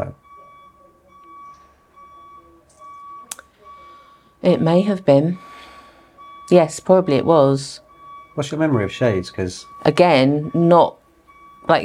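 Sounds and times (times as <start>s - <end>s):
electronic beep: 0.0s - 11.8s
speech: 4.4s - 5.5s, 6.5s - 7.8s, 8.4s - 11.0s, 11.6s - 11.8s.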